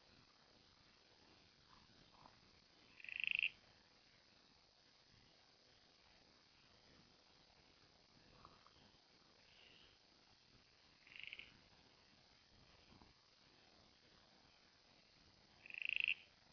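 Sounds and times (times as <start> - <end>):
quiet hiss: 0.0 - 16.5
Copper-backed broodfrog creaking calls: 2.1 - 3.6, 11.0 - 11.6, 15.6 - 16.4.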